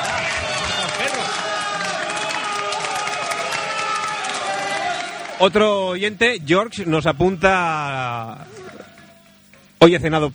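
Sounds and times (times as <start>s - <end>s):
crowd applause: 0.0s - 5.6s
speech: 5.4s - 8.6s, 9.8s - 10.3s.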